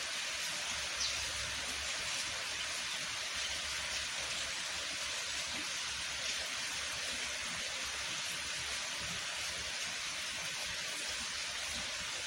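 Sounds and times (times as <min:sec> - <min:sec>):
rain hiss: 0:00.0 - 0:12.2.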